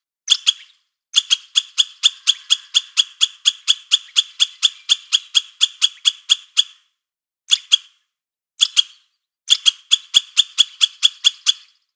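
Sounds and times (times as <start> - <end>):
squirrel barking: 0.3 - 6.8, 9.5 - 11.7.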